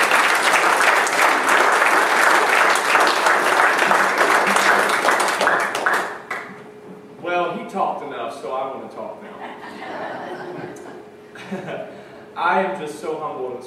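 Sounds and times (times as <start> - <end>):
audience applause: 0.0 - 6.6
laughter: 9.2 - 11.9
speech: 11.5 - 13.6.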